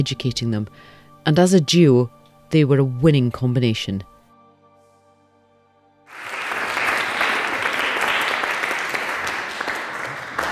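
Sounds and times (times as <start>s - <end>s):
speech: 0.0s - 4.1s
audience applauding: 6.1s - 10.4s.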